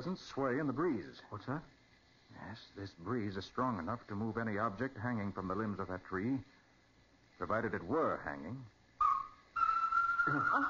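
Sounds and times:
speech: 0:00.0 - 0:06.6, 0:07.4 - 0:08.8, 0:10.3 - 0:10.6
bird calling near an old barn: 0:09.0 - 0:10.6
lower wavering voice-like warble: 0:09.0 - 0:10.6.

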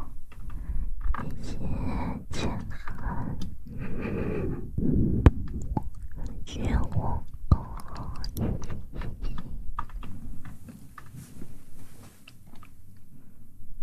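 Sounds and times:
low steady hum: 0:00.0 - 0:13.8
wet mouth sounds with clicks, smacks and crunches: 0:00.4 - 0:11.3, 0:12.1 - 0:12.9
light rustling from hand movements: 0:08.4 - 0:12.8.

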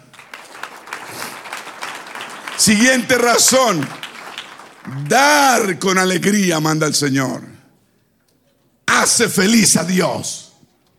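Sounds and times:
audience applause: 0:00.0 - 0:05.7
speech: 0:02.6 - 0:04.0, 0:04.9 - 0:07.5, 0:09.0 - 0:10.4.

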